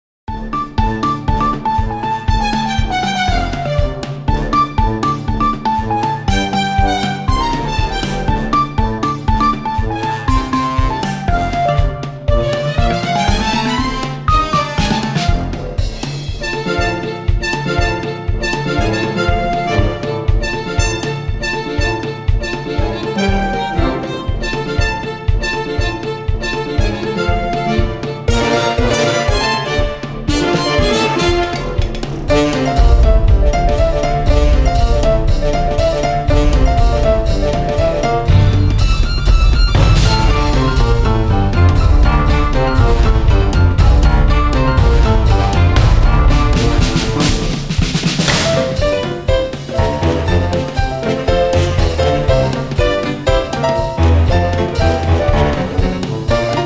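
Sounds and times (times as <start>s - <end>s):
jig tune: 0.3s - 15.8s, 16.4s - 56.6s.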